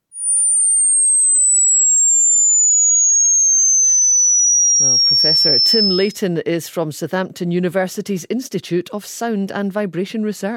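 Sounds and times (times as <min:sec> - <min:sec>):
high-pitched tone, lowered ultrasound demonstration: 0:00.0 - 0:06.2
speech: 0:05.4 - 0:10.5.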